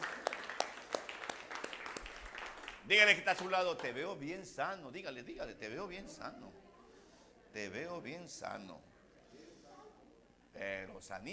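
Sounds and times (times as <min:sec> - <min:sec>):
audience applause: 0:00.0 - 0:03.9
speech: 0:02.9 - 0:06.6, 0:07.6 - 0:08.9, 0:10.6 - 0:11.3.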